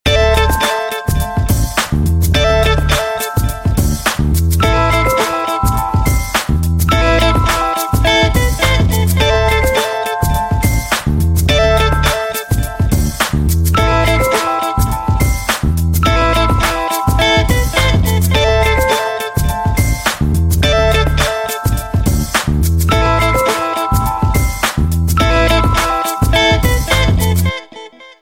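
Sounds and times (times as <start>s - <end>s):
Xperia S ringtone: 0.1s - 28.2s.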